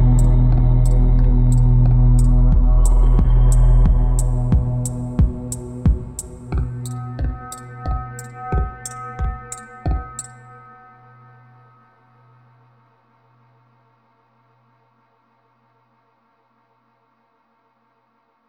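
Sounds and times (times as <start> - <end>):
ambient music: 0.0 - 12.2.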